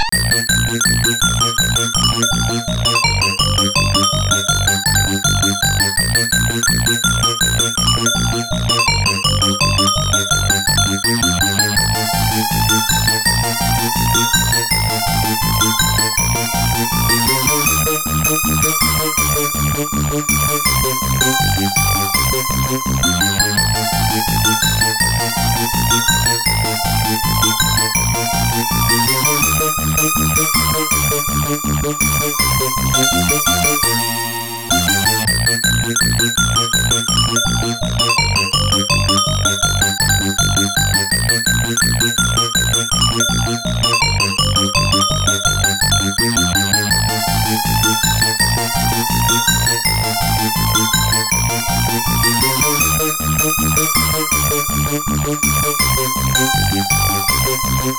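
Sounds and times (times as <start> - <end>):
arcade hurry music: 0.1 - 57.9.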